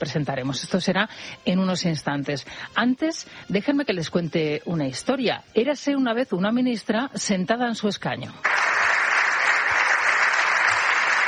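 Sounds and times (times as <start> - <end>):
speech: 0.0 - 8.8
applause in parliament: 8.4 - 11.2.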